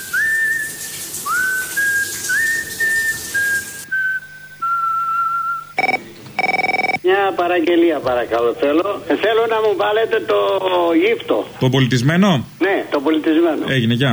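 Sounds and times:
person whistling a tune: 0:00.0 - 0:06.0
speech: 0:07.1 - 0:14.1.

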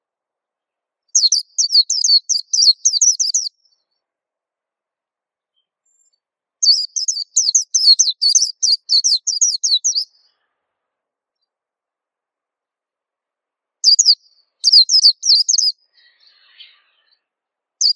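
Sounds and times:
white-eye song: 0:01.2 - 0:04.0, 0:05.5 - 0:10.4, 0:13.8 - 0:17.9.

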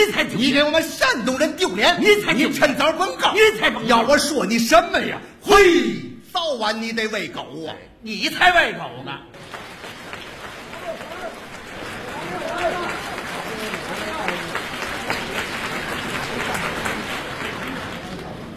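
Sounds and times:
speech: 0:00.0 - 0:09.6
audience applause at a comedic crosstalk performance: 0:09.4 - 0:18.5.

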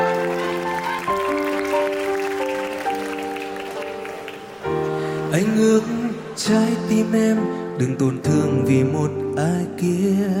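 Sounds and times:
audience applause: 0:00.0 - 0:06.8
speech: 0:05.4 - 0:10.3.

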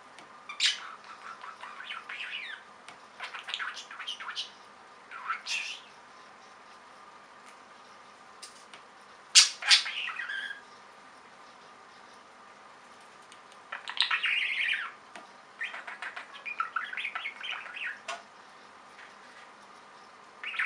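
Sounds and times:
budgerigar chirping and squawking: 0:00.5 - 0:05.9, 0:09.3 - 0:10.7, 0:13.7 - 0:18.2, 0:20.4 - 0:20.6.

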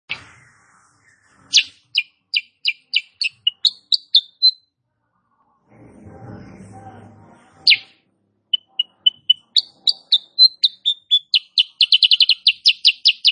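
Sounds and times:
female sooty-headed bulbul chirping song: 0:01.5 - 0:04.6, 0:07.7 - 0:13.3.

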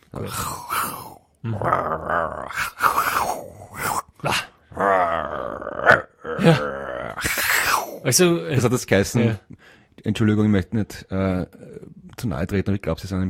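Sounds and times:
voice imitating a growling tiger: 0:00.0 - 0:08.1
speech: 0:00.1 - 0:02.7, 0:04.2 - 0:04.4, 0:06.4 - 0:06.7, 0:08.1 - 0:13.2.

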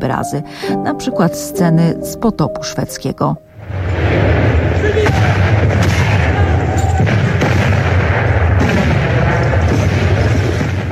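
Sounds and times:
speech: 0:00.0 - 0:04.3
cannon artillery fire: 0:03.6 - 0:10.9.

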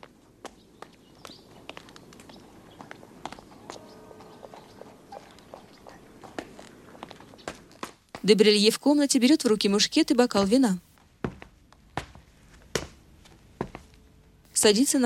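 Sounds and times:
footsteps of someone climbing a staircase in a film scene: 0:00.0 - 0:08.3, 0:11.2 - 0:14.0
speech: 0:08.2 - 0:10.9, 0:14.6 - 0:15.0.

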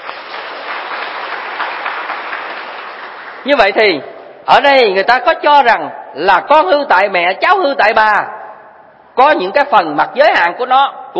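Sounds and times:
students applauding at a Buddhist teacher's lecture: 0:00.0 - 0:03.6
speech: 0:03.4 - 0:08.4, 0:09.2 - 0:11.1.

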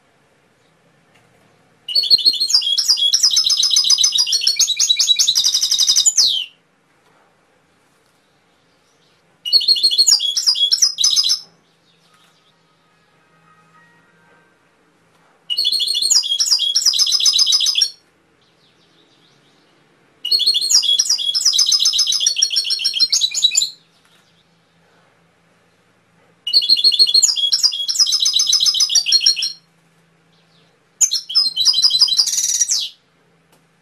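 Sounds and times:
canary singing: 0:01.9 - 0:06.6, 0:08.6 - 0:14.3, 0:15.5 - 0:24.6, 0:26.5 - 0:29.7, 0:30.3 - 0:33.0.

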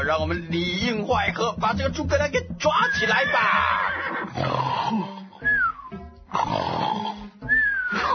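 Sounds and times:
speech: 0:00.1 - 0:05.1
many men snoring loudly: 0:04.2 - 0:05.6, 0:06.3 - 0:08.1.

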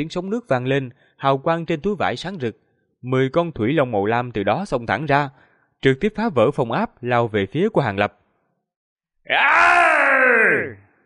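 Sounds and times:
speech: 0:00.0 - 0:08.2, 0:09.3 - 0:10.8
man shouting a battle cry: 0:09.3 - 0:10.8.

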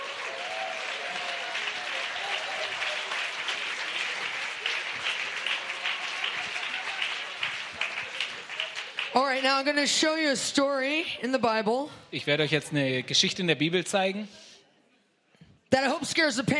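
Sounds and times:
congregation applause at a church conference: 0:00.0 - 0:09.8
speech: 0:09.2 - 0:14.4, 0:15.7 - 0:16.5.

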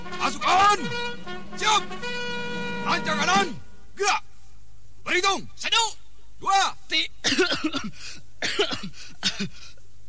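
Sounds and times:
speech: 0:00.3 - 0:02.1, 0:02.9 - 0:04.3, 0:05.1 - 0:08.7
sick person in a marching drill formation coughing harshly: 0:07.2 - 0:09.7.

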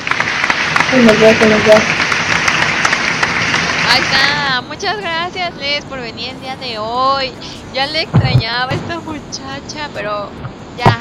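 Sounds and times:
applause sound effect: 0:00.0 - 0:04.7
speech: 0:00.9 - 0:02.0, 0:03.9 - 0:11.0.

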